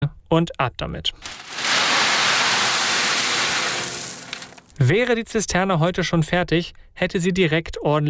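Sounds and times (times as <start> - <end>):
speech: 0.3 - 1.5, 4.8 - 8.0
heavy rain pouring: 1.2 - 4.7.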